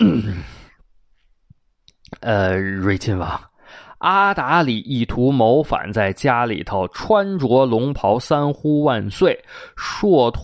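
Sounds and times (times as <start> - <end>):
throat clearing: 0.0 - 0.7
speech: 2.2 - 10.4.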